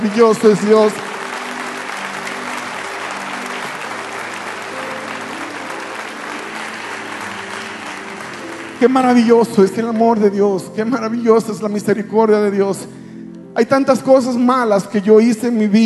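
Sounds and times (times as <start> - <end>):
speech: 0.0 - 1.1, 8.8 - 13.0, 13.6 - 15.8
audience applause: 0.0 - 10.3.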